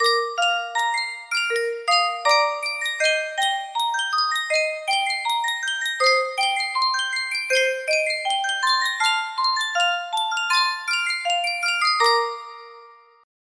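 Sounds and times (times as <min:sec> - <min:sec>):
music box melody: 0:00.0 - 0:13.3.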